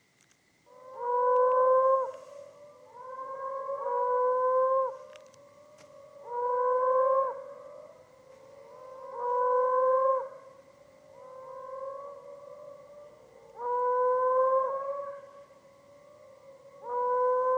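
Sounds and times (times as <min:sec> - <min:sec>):
moaning frog calling: 0:00.7 - 0:17.5.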